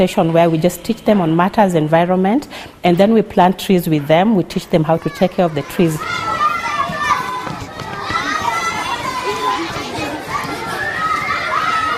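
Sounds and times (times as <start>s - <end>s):
speech: 0.0s - 6.3s
children shouting and laughing on a school playground: 4.0s - 11.9s.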